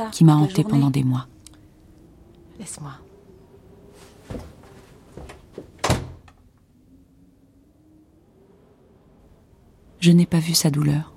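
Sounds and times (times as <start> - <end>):
speech: 0.0 - 1.4, 2.6 - 3.0, 4.3 - 4.5, 10.0 - 11.1
door being shut sharply: 5.7 - 6.3.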